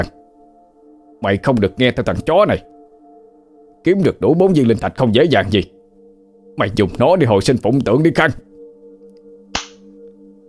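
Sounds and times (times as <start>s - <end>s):
steady low humming drone: 0.0s - 10.4s
speech: 1.2s - 2.7s, 3.8s - 5.8s, 6.6s - 8.5s
slap across the face: 9.5s - 9.9s.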